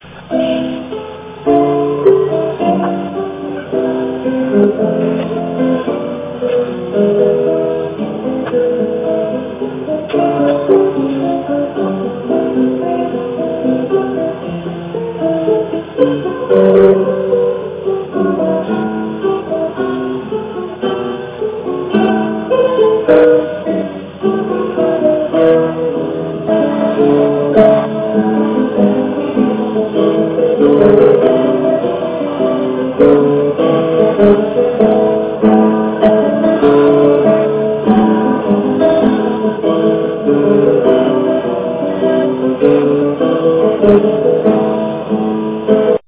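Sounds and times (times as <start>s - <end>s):
gavotte on guitar: 0.0s - 46.0s.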